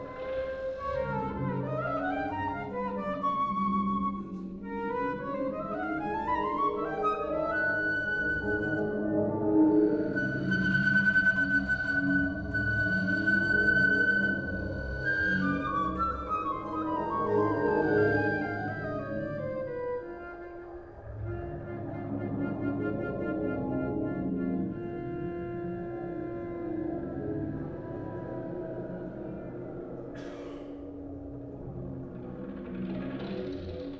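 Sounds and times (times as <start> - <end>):
flute piece on magnetic tape: 0.0 - 30.1.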